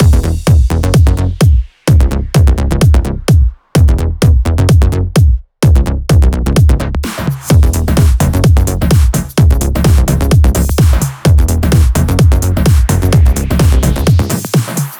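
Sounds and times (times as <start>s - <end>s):
128 BPM music mix: 0.0s - 14.9s.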